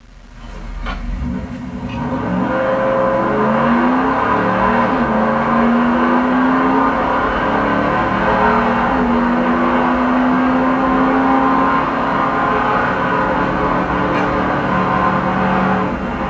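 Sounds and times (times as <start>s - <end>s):
car accelerating from 0 to 70 mph with sliding window open: 0.8s - 16.2s.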